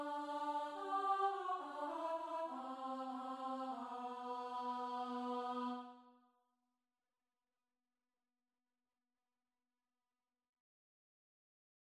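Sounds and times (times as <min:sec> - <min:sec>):
alto voice singing: 0:00.0 - 0:06.0.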